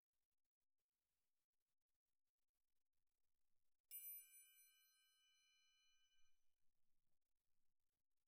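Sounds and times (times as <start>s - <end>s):
triangle: 3.9s - 6.6s.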